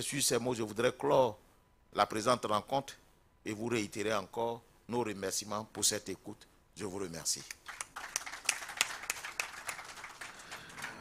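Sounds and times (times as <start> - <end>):
speech: 0.0 - 7.8
audience applause: 7.7 - 10.9.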